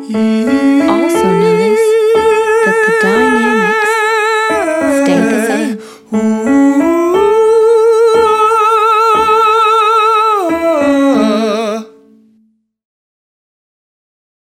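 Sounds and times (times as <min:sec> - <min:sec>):
man voicing changing vowels: 0:00.1 - 0:12.0.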